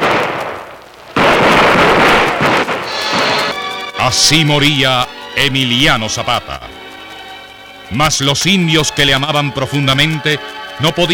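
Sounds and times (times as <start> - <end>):
soldiers' gunfire volley in a dramatised execution at Hacienda Chinameca: 0.0 - 3.6
speech: 4.1 - 6.8, 7.9 - 11.1.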